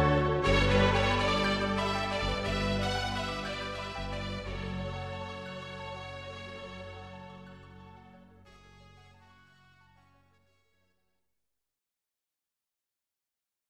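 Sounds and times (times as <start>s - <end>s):
background music: 0.0s - 10.8s.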